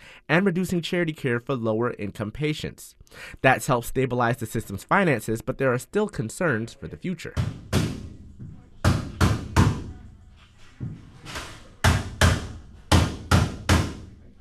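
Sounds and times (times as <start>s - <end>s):
speech: 0.3s - 7.6s
construction crews hammering wooden wall frames: 7.4s - 10.1s, 10.8s - 14.2s.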